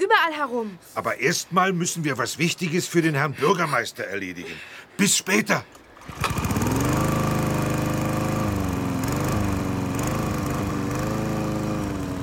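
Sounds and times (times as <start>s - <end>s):
speech: 0.1s - 6.6s
taxi driving off: 6.0s - 12.2s.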